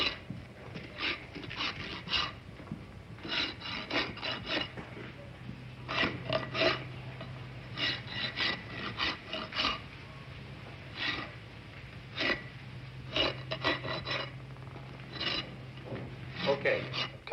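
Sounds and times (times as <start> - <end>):
rasp filing a horse's hoof: 0.0 - 5.2, 5.8 - 10.0, 10.9 - 11.4, 12.1 - 14.4, 15.1 - 15.7, 16.3 - 17.2.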